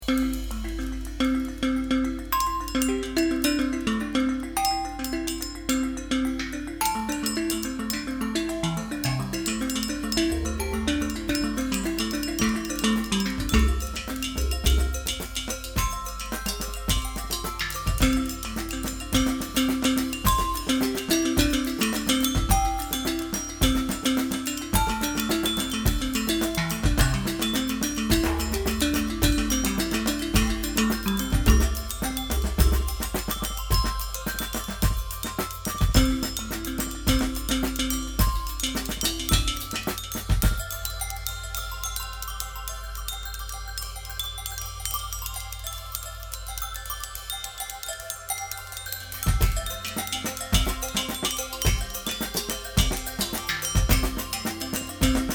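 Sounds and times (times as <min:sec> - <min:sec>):
bells ringing: 0:00.0 - 0:55.3.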